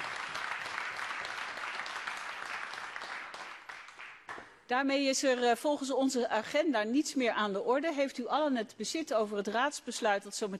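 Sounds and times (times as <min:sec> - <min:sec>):
applause in council meeting: 0:00.0 - 0:04.6
speech: 0:04.7 - 0:10.5.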